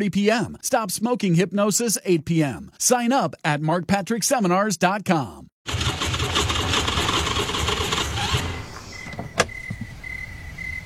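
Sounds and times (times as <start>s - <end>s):
speech: 0.0s - 5.8s
out-of-gas car engine cranking without starting: 5.7s - 9.9s.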